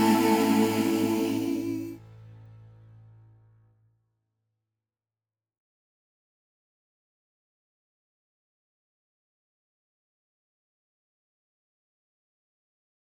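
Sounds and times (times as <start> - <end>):
reference choir singing: 0.0 - 2.0
sing-along instrumental accompaniment for choir: 0.0 - 2.0.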